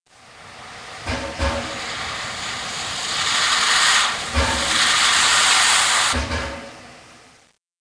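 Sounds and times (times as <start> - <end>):
steam release: 0.2 - 6.7.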